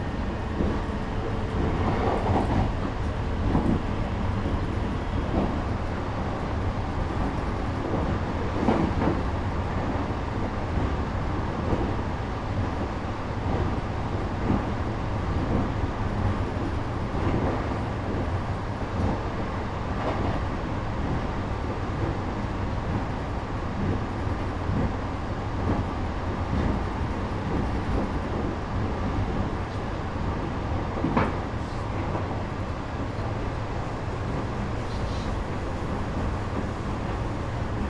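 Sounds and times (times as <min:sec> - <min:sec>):
E353 electric train: 0:00.0 - 0:37.8.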